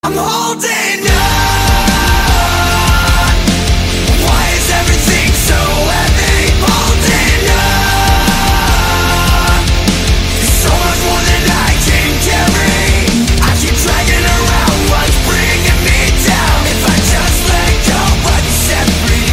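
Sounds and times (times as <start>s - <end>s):
heavy rock cover song: 0.0s - 19.3s.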